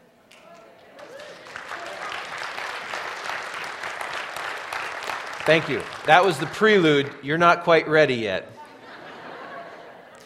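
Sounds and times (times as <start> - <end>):
audience clapping and cheering: 0.3 - 7.7
speech: 5.5 - 8.6
laughter: 8.6 - 10.2.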